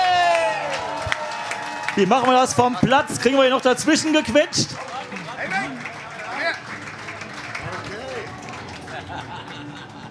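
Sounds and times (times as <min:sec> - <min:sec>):
audience cheering: 0:00.0 - 0:06.6
audience applause: 0:00.0 - 0:10.0
speech: 0:02.0 - 0:04.9
laughter: 0:08.6 - 0:10.0.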